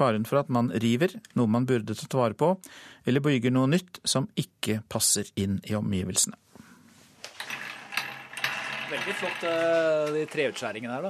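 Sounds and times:
speech: 0.0s - 6.6s, 8.9s - 11.0s
rotating coat hook flicked and spinning: 7.3s - 11.0s.

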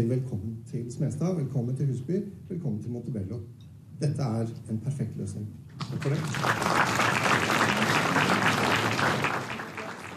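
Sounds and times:
speech: 0.0s - 9.3s
audience applause: 6.0s - 10.1s.

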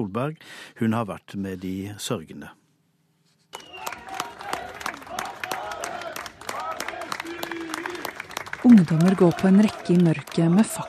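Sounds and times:
speech: 0.0s - 2.6s, 8.6s - 10.8s
crowd applauding a torchlight procession: 3.6s - 10.8s.

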